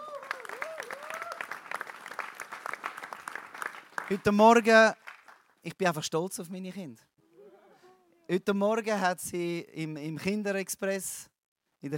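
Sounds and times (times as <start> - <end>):
applause: 0.0 - 5.7
speech: 4.1 - 5.0, 5.6 - 7.1, 8.3 - 11.9.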